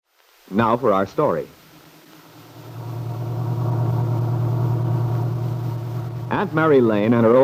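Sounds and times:
speech: 0.5 - 1.6, 6.3 - 7.4
little pickup truck driving into Wakefield: 2.0 - 7.3.

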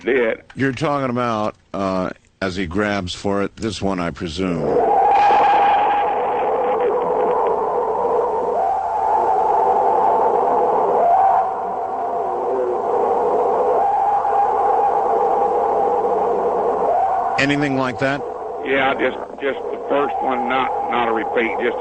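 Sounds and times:
speech: 0.0 - 4.9, 17.4 - 21.7
purported Bigfoot scream: 4.7 - 21.7.

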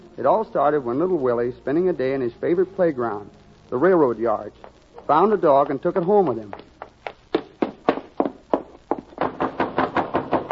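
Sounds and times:
speech: 0.2 - 6.7
knocking: 7.3 - 10.4.

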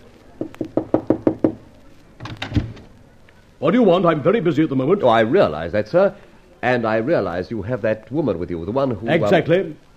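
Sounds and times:
knocking on a door: 0.4 - 1.6
speech: 3.6 - 9.9.

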